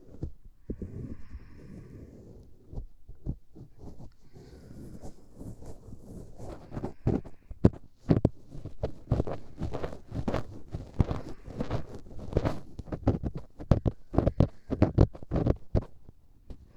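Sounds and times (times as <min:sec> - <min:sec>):
left ear cleaning with long bonten earpick: 0:03.2 - 0:16.1.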